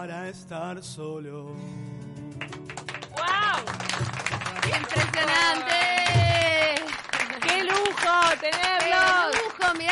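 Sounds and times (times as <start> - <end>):
speech: 0.0 - 2.6, 3.2 - 6.4
studio audience clapping: 2.4 - 9.9.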